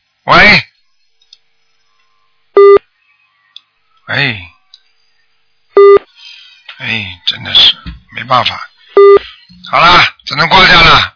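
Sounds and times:
speech: 0:00.2 - 0:00.7, 0:08.3 - 0:08.7, 0:09.7 - 0:11.1
telephone busy tone on phone line: 0:02.6 - 0:02.8, 0:05.8 - 0:06.0, 0:09.0 - 0:09.2.

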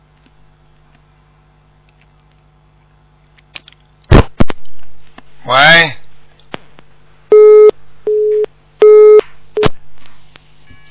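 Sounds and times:
speech: 0:05.4 - 0:06.0
telephone busy signal: 0:07.3 - 0:09.2.

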